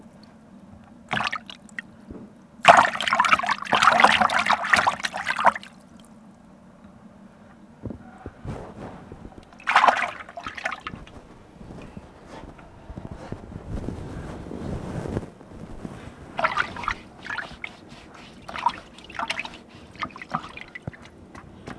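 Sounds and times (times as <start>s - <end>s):
washing raw material: 1.0s - 1.9s, 2.6s - 6.2s, 9.4s - 11.2s, 16.2s - 21.7s.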